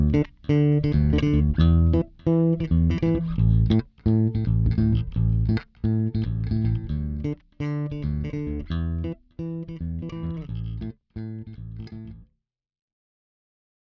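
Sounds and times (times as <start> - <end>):
dance bass solo in A: 0.0 - 12.2.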